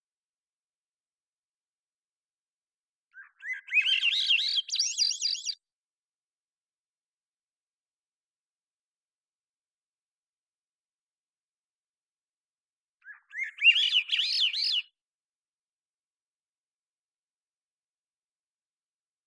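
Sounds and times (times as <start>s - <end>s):
Swainson's thrush singing: 3.1s - 5.7s, 13.0s - 15.0s.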